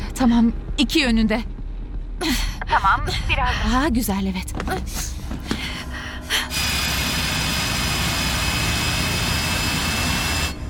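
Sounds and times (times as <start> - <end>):
speech: 0.2 - 1.5, 2.2 - 5.4
drilling: 6.5 - 10.6.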